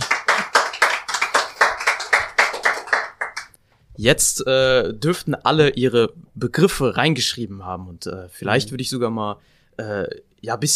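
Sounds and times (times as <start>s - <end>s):
audience applause: 0.0s - 3.5s
speech: 4.0s - 10.7s.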